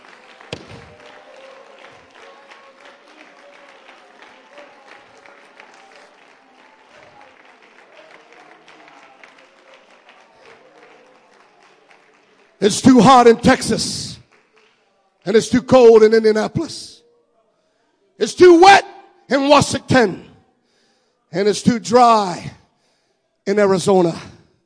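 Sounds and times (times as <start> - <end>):
audience clapping hands: 0.0 - 16.4
speech: 12.6 - 14.1, 15.3 - 16.9, 18.2 - 18.8, 19.5 - 20.3, 21.3 - 22.6, 23.5 - 24.4.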